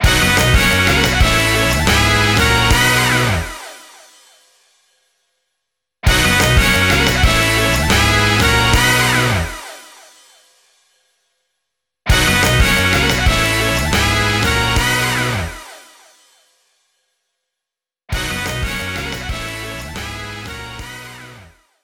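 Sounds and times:
winning jingle: 0.0s - 4.0s, 6.1s - 10.1s, 12.1s - 15.8s, 18.2s - 21.4s.

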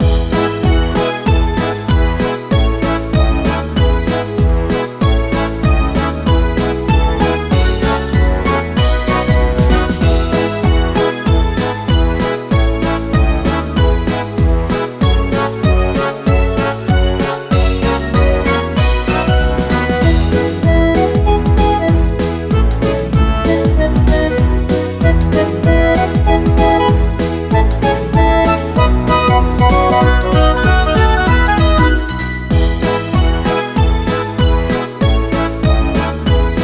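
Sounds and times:
menu background music: 0.0s - 36.6s.

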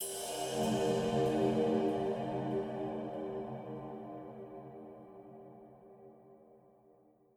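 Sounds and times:
cymbal with reverb: 0.0s - 4.1s.

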